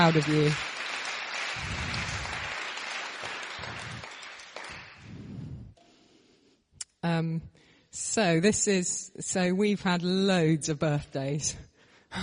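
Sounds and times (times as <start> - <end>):
speech: 0.0 - 0.7, 7.2 - 12.2
applause: 0.0 - 5.4.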